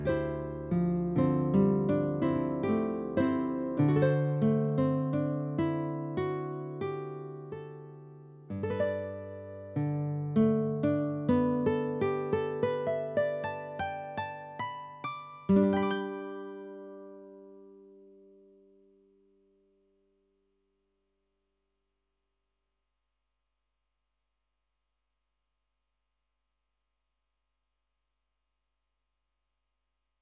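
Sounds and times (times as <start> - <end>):
guitar: 0.0 - 18.9.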